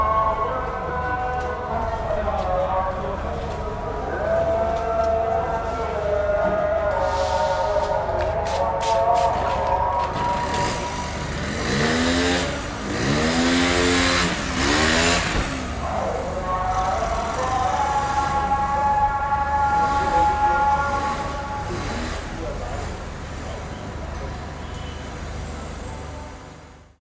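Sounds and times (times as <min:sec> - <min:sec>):
ambient prayers: 0:00.0 - 0:23.8.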